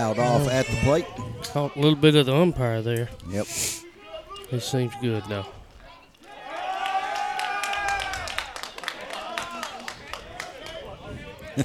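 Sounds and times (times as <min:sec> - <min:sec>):
speech: 0:00.0 - 0:03.8, 0:04.5 - 0:05.6
voices and murmuring from the stands: 0:00.0 - 0:11.6
crowd applause at softball game: 0:06.2 - 0:11.6.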